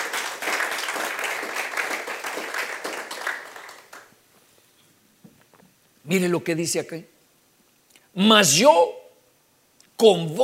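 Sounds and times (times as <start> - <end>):
audience applause: 0.0 - 4.1
speech: 6.1 - 7.2, 8.2 - 9.0, 10.0 - 10.4.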